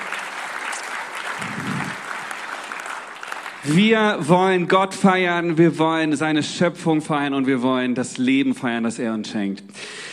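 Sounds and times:
audience applause: 0.0 - 4.2
speech: 3.6 - 9.9.

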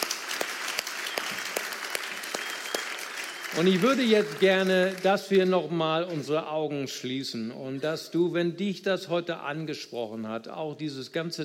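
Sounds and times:
audience applause: 0.0 - 5.5
speech: 3.5 - 11.4.

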